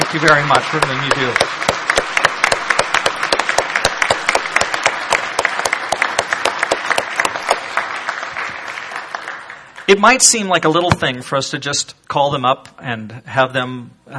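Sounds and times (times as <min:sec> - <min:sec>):
audience applause: 0:00.0 - 0:10.4
speech: 0:00.1 - 0:01.6, 0:09.9 - 0:14.1.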